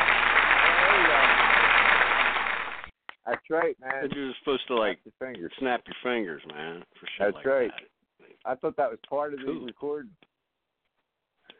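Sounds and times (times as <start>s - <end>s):
audience applause: 0.0s - 2.9s
speech: 3.5s - 10.3s.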